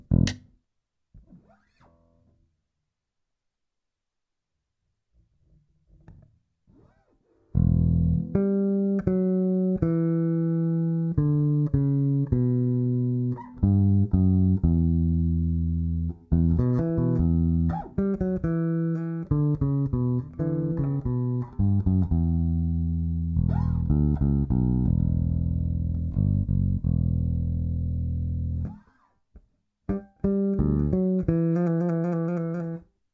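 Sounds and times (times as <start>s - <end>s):
bluesy descending bassline: 7.6s - 28.8s, 29.9s - 32.8s.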